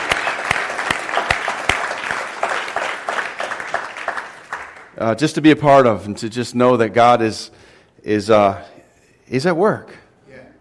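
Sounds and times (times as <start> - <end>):
audience applause: 0.0 - 5.0
speech: 5.0 - 8.7, 9.3 - 10.0.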